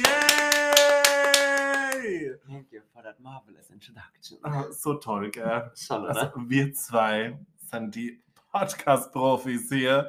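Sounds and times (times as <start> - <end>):
applause: 0.0 - 2.2
speech: 2.6 - 10.0.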